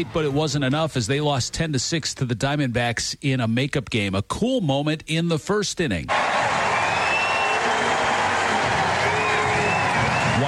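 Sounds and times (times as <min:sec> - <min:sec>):
speech: 0:00.0 - 0:06.6
baseball crowd cheering: 0:06.1 - 0:10.4.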